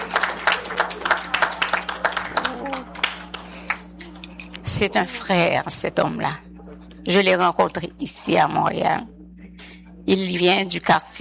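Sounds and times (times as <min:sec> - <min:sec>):
audience applause: 0:00.0 - 0:03.9
low steady hum: 0:00.0 - 0:11.1
speech: 0:04.7 - 0:06.4, 0:07.1 - 0:09.2, 0:10.1 - 0:11.1.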